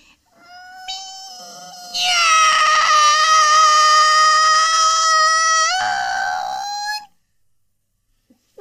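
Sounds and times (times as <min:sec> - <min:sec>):
person imitating a cat meowing: 0:00.4 - 0:07.1.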